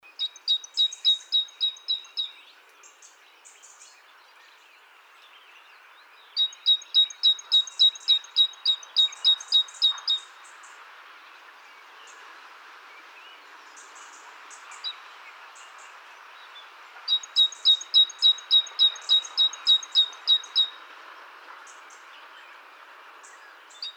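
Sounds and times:
great tit singing: 0:00.1 - 0:03.1, 0:06.4 - 0:10.4, 0:17.1 - 0:20.8.

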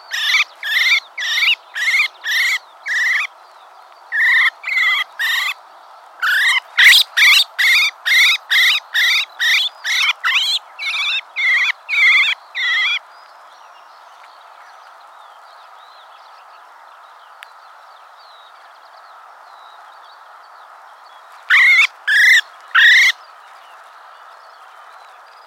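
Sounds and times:
common blackbird harsh nasal calls: 0:00.0 - 0:03.3, 0:04.1 - 0:05.6, 0:06.2 - 0:13.0, 0:21.4 - 0:23.2
faint click: 0:17.4 - 0:17.6.

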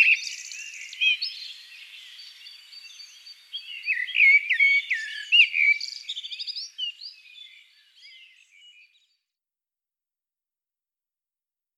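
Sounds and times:
Eurasian blackbird singing: 0:00.0 - 0:09.2
faint background bird chirping: 0:00.0 - 0:09.4.

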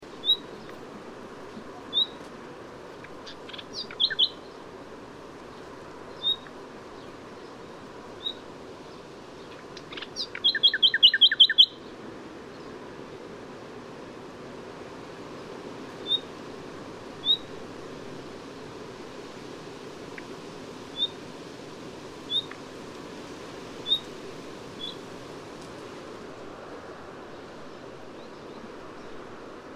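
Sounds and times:
soft background noise: 0:00.0 - 0:29.7
common nightingale whistled calls: 0:00.2 - 0:00.6, 0:01.9 - 0:02.2, 0:03.2 - 0:04.4, 0:06.1 - 0:06.5, 0:08.2 - 0:08.4, 0:09.8 - 0:11.8, 0:16.0 - 0:16.3, 0:17.2 - 0:17.5, 0:21.0 - 0:21.2, 0:22.3 - 0:22.6, 0:23.8 - 0:24.1, 0:24.8 - 0:25.0.

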